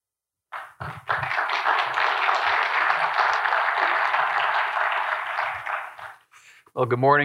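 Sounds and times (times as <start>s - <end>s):
audience applause: 0.5s - 6.3s
speech: 6.8s - 7.2s.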